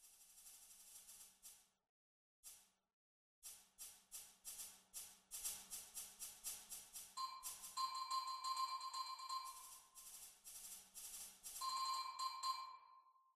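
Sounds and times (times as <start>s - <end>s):
snare drum track: 3.5s - 12.6s.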